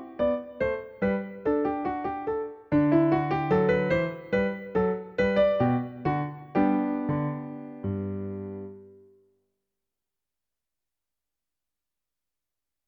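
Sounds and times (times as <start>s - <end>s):
Yamaha NP-30 digital piano demo piece: 0.0s - 9.2s.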